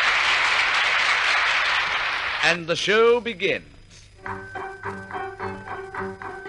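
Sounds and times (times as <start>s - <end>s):
large audience applause: 0.0s - 2.7s
speech: 2.4s - 5.0s.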